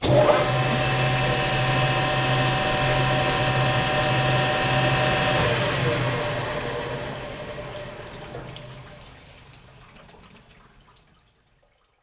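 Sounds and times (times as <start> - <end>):
grinder: 0.1 - 7.3.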